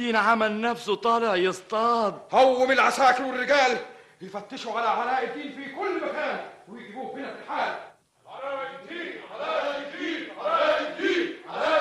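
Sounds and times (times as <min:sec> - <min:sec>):
speech: 0:00.0 - 0:08.6
crowd shouting demanding a prisoner's release: 0:09.0 - 0:11.7.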